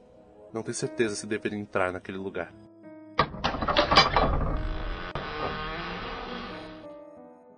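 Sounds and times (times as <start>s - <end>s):
speech: 0.5s - 2.7s
door opening: 3.2s - 6.9s.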